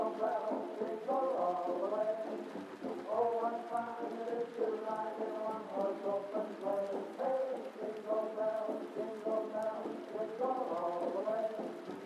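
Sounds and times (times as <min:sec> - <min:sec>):
muffled oldies music playing from another room: 0:00.0 - 0:12.0
rain hissing: 0:00.0 - 0:12.0.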